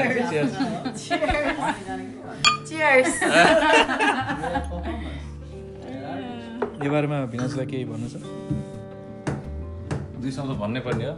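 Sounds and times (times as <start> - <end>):
people chuckling and laughing: 0.0 - 2.1, 3.0 - 5.3
speech: 0.3 - 4.7, 6.8 - 8.7, 10.2 - 11.1
glasses of wine and beer clinking together in a toast: 2.4 - 2.8.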